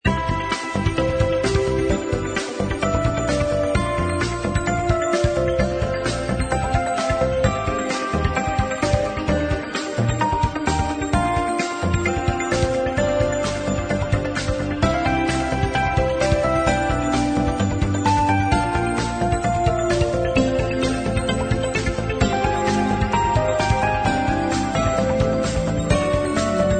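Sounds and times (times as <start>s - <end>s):
background music: 0.0s - 26.7s.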